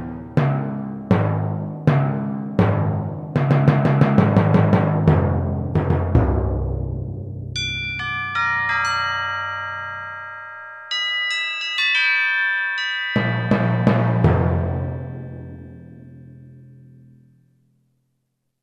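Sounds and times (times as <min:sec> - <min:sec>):
timpani on a synthesizer: 0:00.0 - 0:07.6, 0:13.2 - 0:16.4
chimes on a synthesizer: 0:07.6 - 0:17.3.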